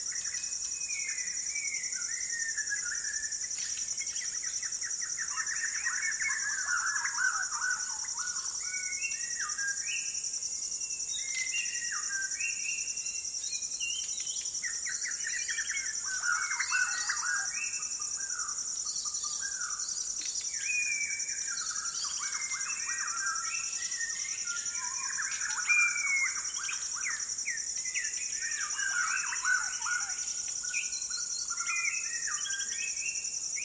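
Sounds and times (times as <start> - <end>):
insect chorus: 0.0 - 33.6
white-crowned shama song: 0.0 - 33.6.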